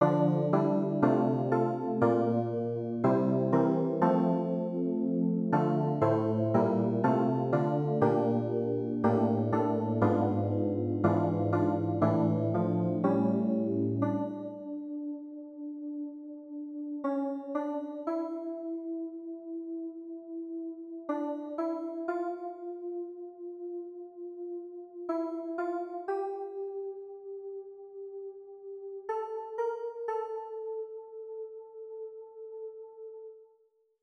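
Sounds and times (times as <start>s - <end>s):
keyboard: 0.0s - 33.6s.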